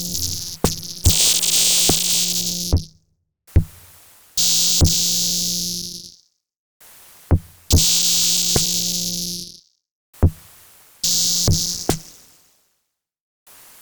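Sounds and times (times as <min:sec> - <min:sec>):
zone ambience: 0:00.0 - 0:02.9, 0:04.4 - 0:06.1, 0:07.7 - 0:09.5, 0:11.1 - 0:12.0.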